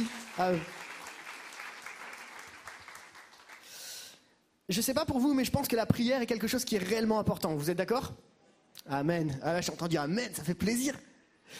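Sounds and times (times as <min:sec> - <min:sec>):
audience applause: 0:00.0 - 0:03.8
speech: 0:00.4 - 0:00.8, 0:04.7 - 0:11.5.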